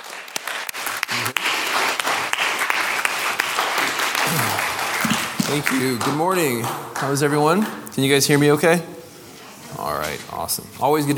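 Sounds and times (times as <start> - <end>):
audience applause welcoming a pastor: 0.0 - 7.8
speech: 5.5 - 9.0, 9.9 - 11.1.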